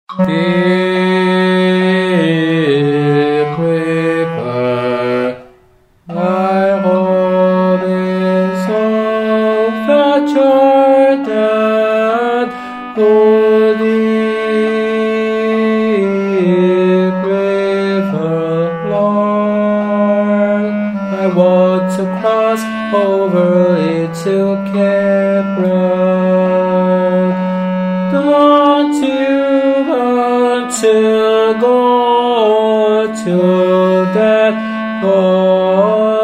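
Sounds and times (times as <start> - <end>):
tenor singing: 0.1 - 36.2.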